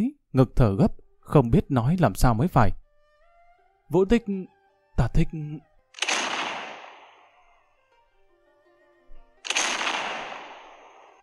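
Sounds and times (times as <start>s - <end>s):
speech: 0.0s - 2.8s, 3.9s - 5.7s
distant cannon fire booming: 6.0s - 7.3s, 9.5s - 11.2s.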